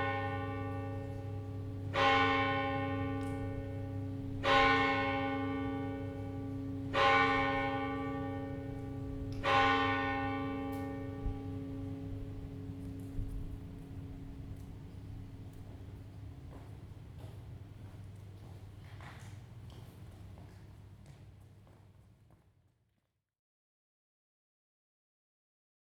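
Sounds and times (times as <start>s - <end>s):
Roncesvalles church bells: 0.0s - 16.0s.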